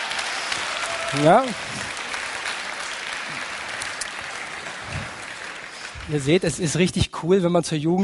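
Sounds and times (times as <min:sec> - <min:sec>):
audience applause: 0:00.0 - 0:06.9
speech: 0:01.1 - 0:01.9, 0:06.1 - 0:08.0.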